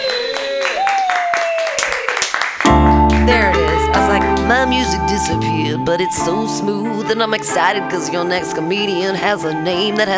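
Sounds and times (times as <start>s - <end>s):
audience clapping: 0.0s - 4.4s
speech: 4.8s - 10.1s.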